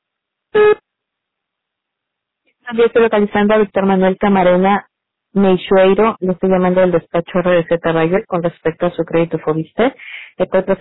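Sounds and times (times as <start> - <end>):
voicemail beep: 0.6 - 0.8
speech: 2.7 - 10.7.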